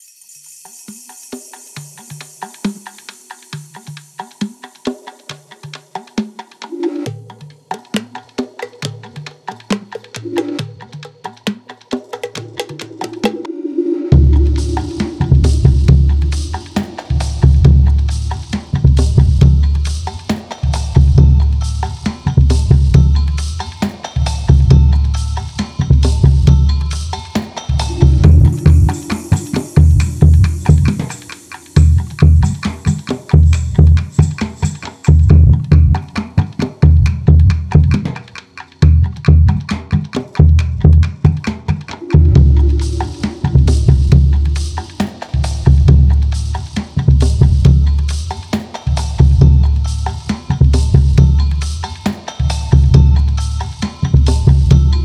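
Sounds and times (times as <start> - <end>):
percussion: 0.0 - 55.0.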